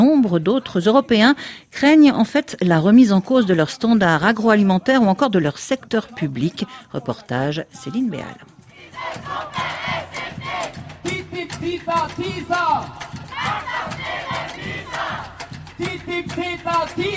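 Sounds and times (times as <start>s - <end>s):
speech: 0.3s - 10.8s, 11.4s - 17.1s
protesters chanting slogans outside the Austrian chancellery: 8.7s - 17.1s.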